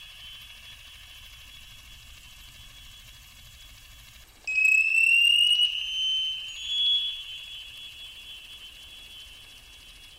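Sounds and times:
Navy sonar pings: 4.5s - 10.1s.

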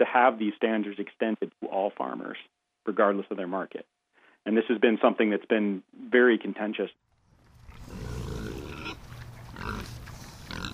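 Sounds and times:
speech: 0.1s - 7.0s
Gloucestershire Old Spot pigs grunting: 7.6s - 10.7s.

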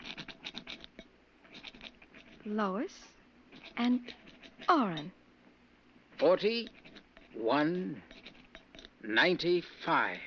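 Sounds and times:
rock scratching on a lead door: 0.0s - 2.5s, 3.5s - 5.1s, 6.2s - 9.4s
speech: 2.4s - 3.2s, 3.8s - 5.2s, 6.2s - 6.8s, 7.4s - 8.1s, 9.0s - 10.2s.

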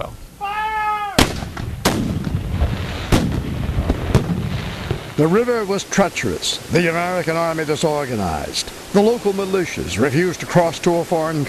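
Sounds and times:
cannon firing in battle reenactment: 1.2s - 5.3s
speech: 5.2s - 11.4s.

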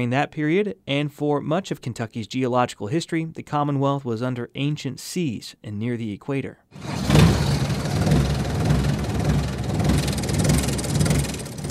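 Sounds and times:
speech: 0.0s - 6.9s
diesel engine on a four-person mine ride vehicle in a Kentucky coal mine: 6.8s - 11.6s.

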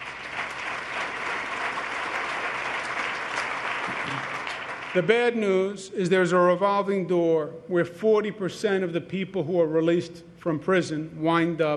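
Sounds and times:
large audience applause: 0.0s - 5.1s
speech: 4.9s - 11.7s.

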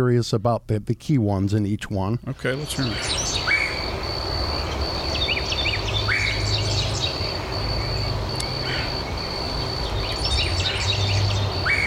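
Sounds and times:
speech: 0.0s - 3.4s
Carolina wren rolling repeated song: 2.1s - 11.8s
other small birds chirping: 2.3s - 11.8s
low rumbling: 2.4s - 11.8s
red-headed woodpecker harsh queer calls: 2.4s - 11.8s.

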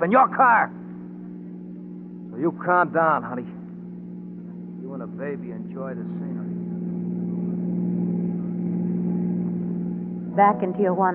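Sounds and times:
speech: 0.0s - 0.8s, 2.4s - 3.6s, 5.0s - 6.4s, 10.4s - 11.1s
car engine droning: 0.0s - 11.1s.

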